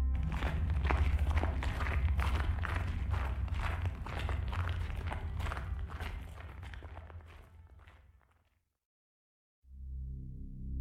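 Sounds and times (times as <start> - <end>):
footsteps crunching through snow: 0.2 - 8.3.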